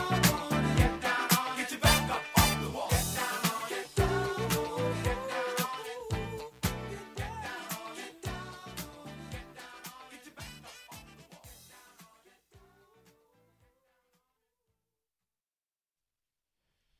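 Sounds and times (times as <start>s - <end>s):
funk music: 0.0s - 12.2s.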